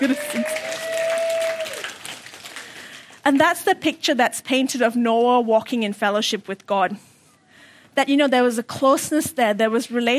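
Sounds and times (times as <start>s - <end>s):
speech: 0.0s - 0.4s, 3.3s - 7.1s, 8.0s - 10.1s
round of applause: 0.0s - 3.2s.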